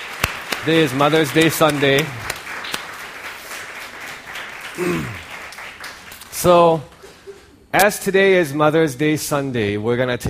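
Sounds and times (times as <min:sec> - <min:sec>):
audience applause: 0:00.0 - 0:06.3
speech: 0:00.6 - 0:02.3, 0:04.8 - 0:05.2, 0:06.4 - 0:06.9, 0:07.7 - 0:10.2.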